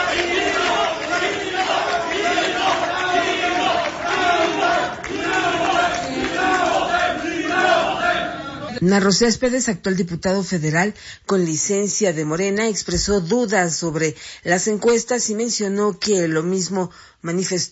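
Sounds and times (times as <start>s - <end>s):
large crowd of protesters shouting and chanting fraud: 0.0s - 8.8s
speech: 8.8s - 17.7s.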